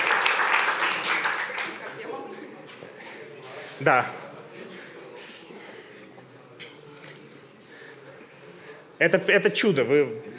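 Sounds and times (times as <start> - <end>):
audience applause at a magic trick performance: 0.0 - 2.2
speech: 3.8 - 4.2, 9.0 - 10.3.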